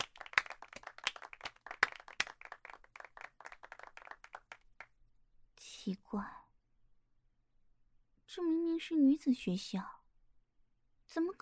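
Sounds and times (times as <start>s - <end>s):
group of people clapping: 0.0s - 4.9s
speech: 5.9s - 6.4s, 8.4s - 10.0s, 11.1s - 11.4s.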